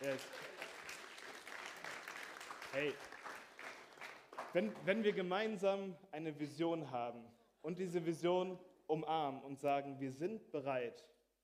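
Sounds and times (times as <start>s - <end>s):
speech: 0.0s - 0.6s, 2.7s - 3.2s, 4.5s - 11.2s
applause: 0.0s - 5.4s.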